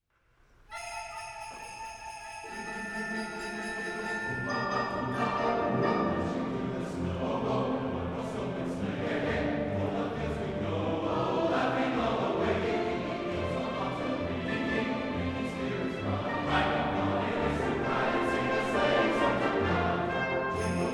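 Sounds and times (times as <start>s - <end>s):
Christmas song: 0.7s - 20.9s.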